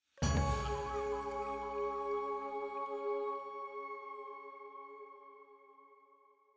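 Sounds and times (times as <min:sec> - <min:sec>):
full choir singing jingle: 0:00.2 - 0:04.9
flute in C sharp: 0:00.2 - 0:06.0.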